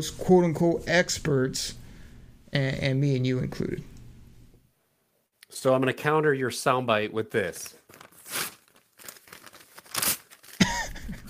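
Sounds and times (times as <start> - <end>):
speech: 0.0 - 1.8, 2.5 - 3.9, 5.5 - 8.5
paper from a mock draft being ripped up: 7.9 - 10.6.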